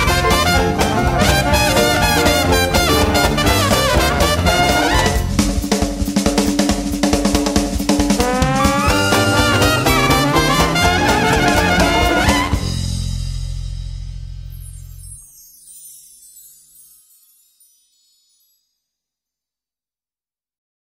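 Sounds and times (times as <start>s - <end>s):
jazz music: 0.0s - 6.7s, 7.8s - 16.0s.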